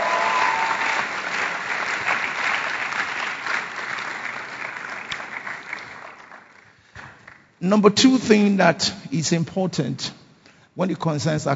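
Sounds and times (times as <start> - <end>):
audience applause: 0.0 - 7.4
speech: 7.6 - 10.2, 10.8 - 11.5.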